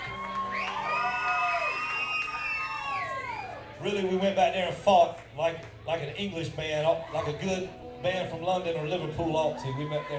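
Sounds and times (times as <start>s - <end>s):
applause: 0.0s - 3.5s
crowd cheering: 0.0s - 4.0s, 9.5s - 10.1s
speech: 3.8s - 10.1s.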